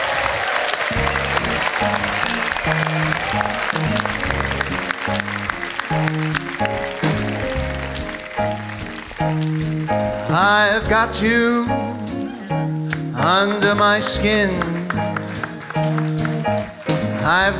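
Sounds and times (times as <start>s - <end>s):
audience applause welcoming a singer at a live show: 0.0s - 10.4s, 14.6s - 17.4s
band playing rhythmic chords: 0.0s - 17.5s
speech: 1.8s - 2.8s, 10.6s - 11.8s, 13.2s - 15.1s, 17.3s - 17.5s.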